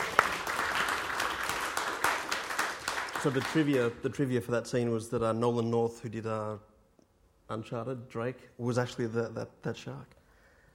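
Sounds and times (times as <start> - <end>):
crowd applauding: 0.0 - 4.0
speech: 3.2 - 6.7, 7.5 - 10.2.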